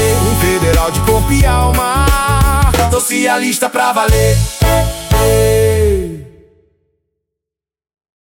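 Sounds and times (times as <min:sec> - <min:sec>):
jingle: 0:00.0 - 0:03.2, 0:04.1 - 0:06.0.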